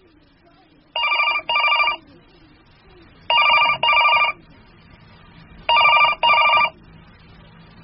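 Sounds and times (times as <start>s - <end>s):
telephone ringing: 1.0s - 2.0s, 3.3s - 4.4s, 5.7s - 6.8s.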